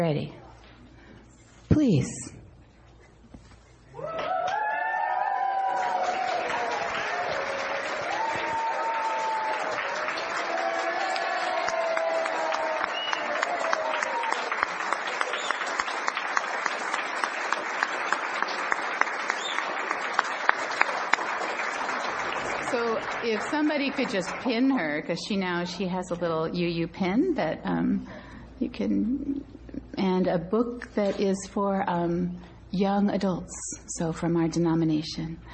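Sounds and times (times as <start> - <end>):
speech: 0.0 - 0.4, 1.7 - 2.4, 23.6 - 35.5
audience cheers and whoops: 4.0 - 15.7
audience applause: 4.0 - 25.0.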